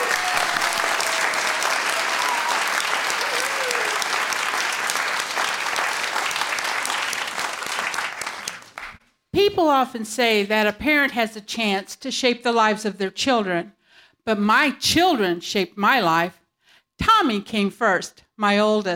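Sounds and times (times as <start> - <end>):
audience applause: 0.0 - 9.0
speech: 9.6 - 16.4, 17.0 - 18.9.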